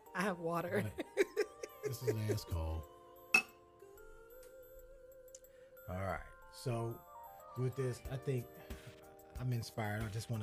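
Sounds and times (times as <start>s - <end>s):
speech: 0.2s - 1.2s, 1.8s - 2.9s, 5.9s - 8.8s, 9.4s - 10.4s
laughter: 0.8s - 2.8s
glasses clinking in a toast: 3.4s - 3.6s.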